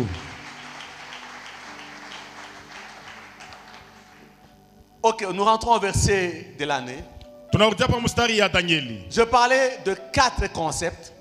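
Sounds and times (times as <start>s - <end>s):
speech: 0.0s - 0.2s, 5.0s - 11.1s
congregation clapping at a Sunday church service: 0.0s - 4.6s.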